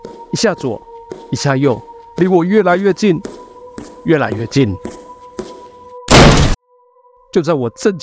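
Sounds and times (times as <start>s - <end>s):
speech: 0.3s - 3.4s, 4.0s - 4.9s, 7.4s - 8.0s
loud thud of stomping on floor: 6.1s - 6.6s.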